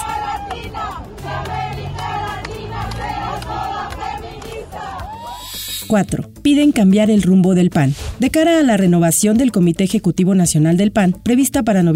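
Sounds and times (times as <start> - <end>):
crowd of feminist groups shouting and cheering in celebration: 0.0 - 5.6
high whoops: 5.0 - 5.6
speech: 5.9 - 11.9.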